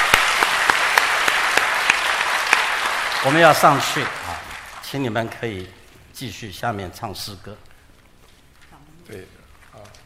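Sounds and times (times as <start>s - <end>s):
crowd applause: 0.0s - 4.9s
speech: 3.2s - 4.2s, 4.9s - 7.7s, 9.1s - 10.0s.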